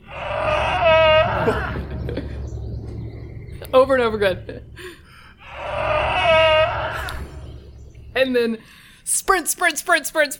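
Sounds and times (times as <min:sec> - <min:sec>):
cow bellowing: 0:00.0 - 0:02.1, 0:05.4 - 0:07.6
speech: 0:01.5 - 0:01.8, 0:03.9 - 0:04.9, 0:08.2 - 0:10.3.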